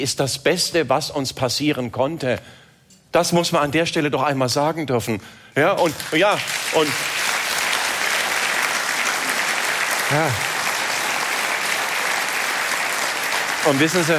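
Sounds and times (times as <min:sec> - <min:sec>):
speech: 0:00.0 - 0:07.3, 0:10.1 - 0:10.5, 0:13.7 - 0:14.1
audience applause: 0:05.8 - 0:14.1.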